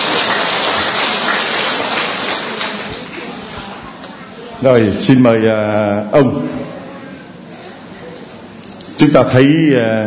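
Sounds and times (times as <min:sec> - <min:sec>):
crowd applause: 0:00.0 - 0:03.9
speech: 0:04.6 - 0:06.8, 0:09.0 - 0:10.0.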